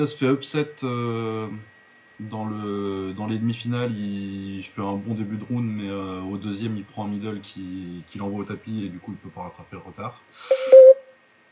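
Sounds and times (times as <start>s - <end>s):
speech: 0.0s - 10.8s
Skype call beeping: 10.5s - 11.0s.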